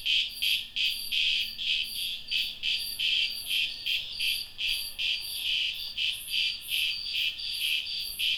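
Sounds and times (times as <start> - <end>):
cicadas buzzing: 0.2 - 8.3.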